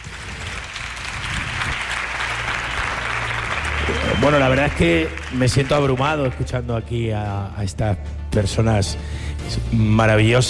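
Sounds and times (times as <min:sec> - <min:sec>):
audience applause: 0:00.0 - 0:06.7
speech: 0:04.2 - 0:10.4.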